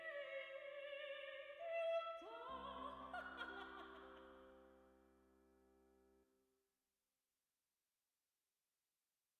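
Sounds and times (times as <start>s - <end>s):
panned ambisonic music: 0.0s - 6.3s.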